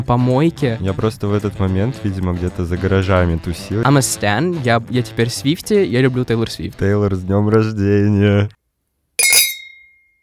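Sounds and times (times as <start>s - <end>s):
speech: 0.0s - 8.6s
glasses clinking: 9.2s - 10.0s.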